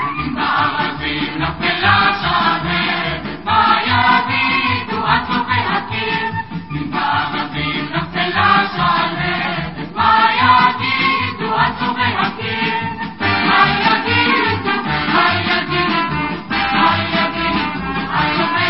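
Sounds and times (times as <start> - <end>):
vocals: 0.1 - 18.6.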